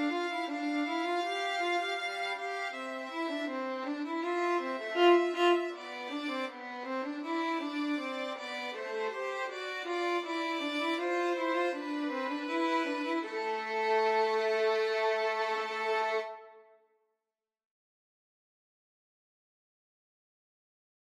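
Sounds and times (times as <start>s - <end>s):
violin trio playing: 0.0s - 16.5s.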